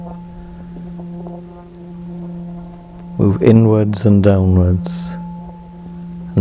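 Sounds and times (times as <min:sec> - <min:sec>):
faint murmuring: 0:00.0 - 0:05.3
deep resonant bell ringing: 0:00.0 - 0:06.3
speech: 0:03.2 - 0:05.1.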